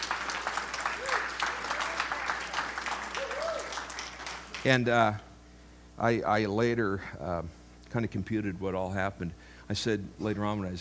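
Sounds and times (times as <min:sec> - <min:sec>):
audience applause: 0:00.0 - 0:04.8
speech: 0:04.6 - 0:05.3, 0:06.0 - 0:10.8.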